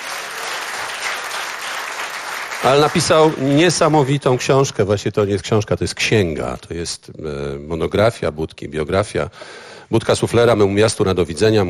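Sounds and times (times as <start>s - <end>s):
audience applauding at a live radio event: 0.0s - 4.8s
speech: 2.6s - 11.6s.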